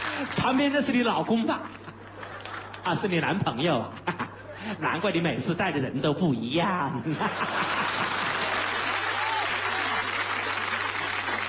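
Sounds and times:
audience applause: 0.0s - 1.2s, 7.3s - 11.4s
speech: 0.2s - 1.8s, 2.8s - 8.2s
laughter: 1.7s - 5.4s, 7.0s - 9.0s.

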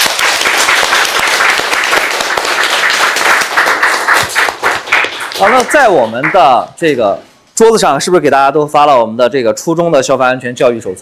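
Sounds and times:
sustained applause from a room full of people: 0.0s - 6.4s
speech: 5.4s - 11.0s.

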